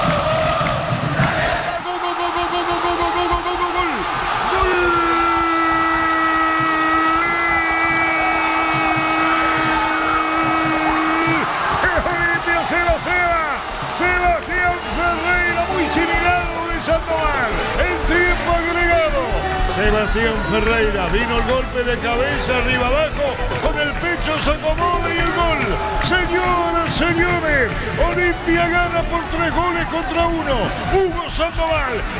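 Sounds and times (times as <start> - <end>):
stadium crowd roaring: 0.0 - 32.1
speech: 20.6 - 23.5, 24.3 - 32.1.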